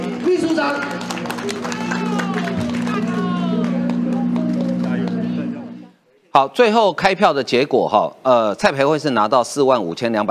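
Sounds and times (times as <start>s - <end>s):
audience applause: 0.0s - 5.9s
low steady hum: 0.0s - 6.0s
speech: 6.3s - 10.2s.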